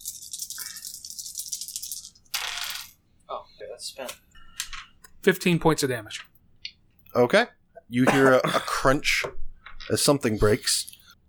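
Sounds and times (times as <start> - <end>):
dice rolling: 0.0 - 3.0
speech: 3.8 - 4.3, 5.2 - 6.3, 7.2 - 10.9.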